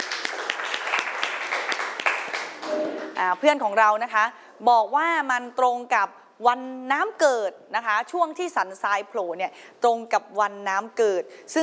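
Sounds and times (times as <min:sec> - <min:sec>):
group of people applauding: 0:00.0 - 0:03.2
speech: 0:03.2 - 0:11.6.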